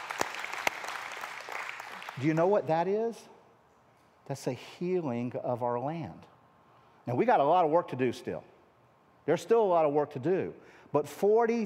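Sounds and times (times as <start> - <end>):
audience clapping: 0.0 - 2.6
speech: 2.2 - 3.3, 4.3 - 6.3, 7.1 - 8.5, 9.3 - 11.6.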